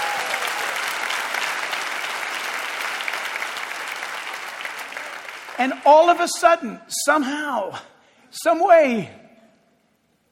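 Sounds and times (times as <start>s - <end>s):
audience cheering: 0.0s - 5.9s
speech: 5.6s - 9.2s.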